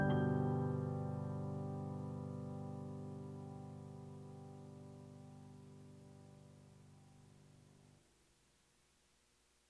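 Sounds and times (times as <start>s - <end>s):
piano piece: 0.0s - 6.8s.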